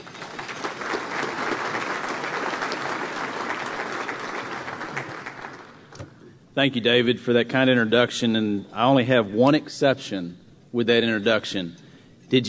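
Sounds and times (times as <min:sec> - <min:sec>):
audience applause welcoming Texas Comptroller Glenn Hegar: 0:00.0 - 0:05.9
speech: 0:06.6 - 0:12.4.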